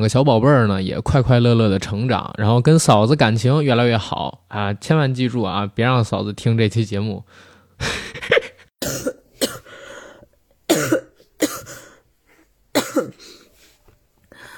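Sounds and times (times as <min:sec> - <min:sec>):
speech: 0:00.0 - 0:08.2
coughing: 0:07.8 - 0:09.8, 0:10.7 - 0:12.1, 0:12.7 - 0:13.5.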